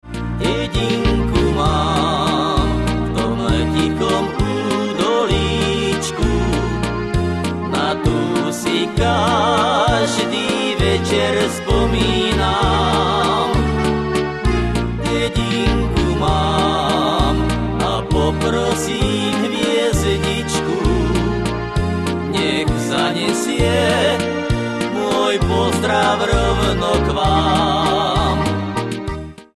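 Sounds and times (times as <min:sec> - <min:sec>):
chord: 0:00.0 - 0:29.5.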